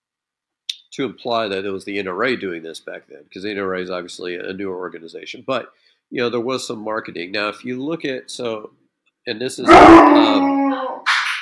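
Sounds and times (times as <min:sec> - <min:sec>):
speech: 0:01.0 - 0:11.0
dog howling and growling: 0:09.6 - 0:11.1.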